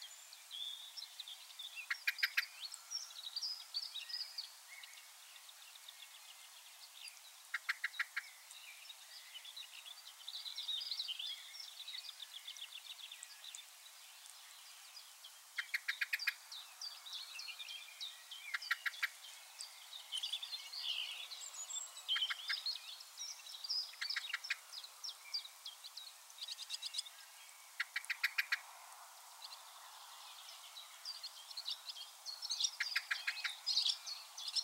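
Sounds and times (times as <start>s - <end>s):
chorus of other birds twittering: 0.7s - 5.9s, 6.8s - 28.7s, 29.5s - 34.6s
common blackbird chink calls: 1.8s - 3.1s, 7.5s - 8.6s, 15.6s - 16.4s, 18.4s - 19.7s, 22.1s - 22.7s, 27.8s - 28.6s, 32.6s - 34.6s.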